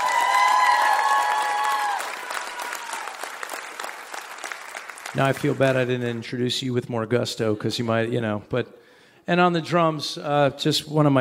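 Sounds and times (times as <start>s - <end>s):
concert crowd in West Virginia applauding and cheering for a guitarist: 0.0s - 6.3s
speech: 5.2s - 11.1s.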